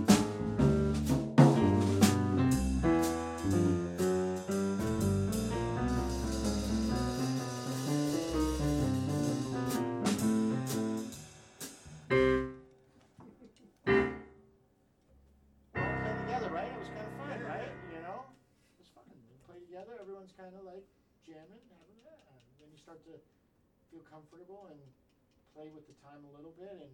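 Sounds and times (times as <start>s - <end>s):
jazz solo: 0.0s - 12.7s, 13.9s - 14.4s, 15.8s - 18.2s.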